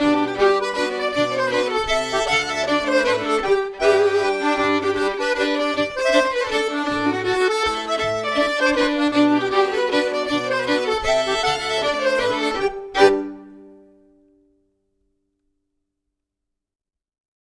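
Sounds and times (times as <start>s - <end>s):
mazurka: 0.0s - 13.6s.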